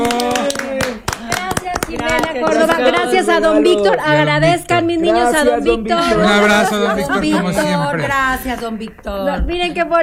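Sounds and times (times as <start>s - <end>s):
hand clapping: 0.0s - 4.1s, 8.0s - 9.3s
laughter: 2.4s - 8.6s
speech: 2.4s - 10.0s.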